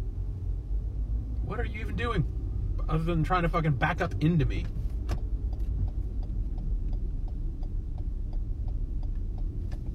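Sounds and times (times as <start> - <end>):
car engine and road rumble driving down a one-way street: 0.0 - 9.9
speech: 1.5 - 4.8
faint regular ticking: 4.2 - 9.9.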